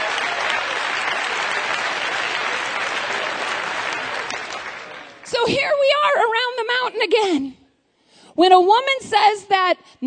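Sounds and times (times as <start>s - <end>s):
audience applause: 0.0s - 5.4s
speech: 5.5s - 7.6s, 8.4s - 10.0s.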